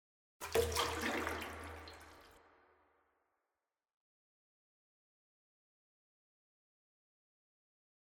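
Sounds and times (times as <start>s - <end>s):
person soaking in hot water with reverb: 0.4s - 2.4s.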